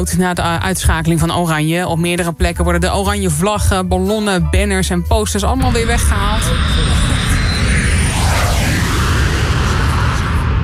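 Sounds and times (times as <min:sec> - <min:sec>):
speech: 0:00.0 - 0:07.0
Boeing 737 airplane flying overhead: 0:05.7 - 0:10.6.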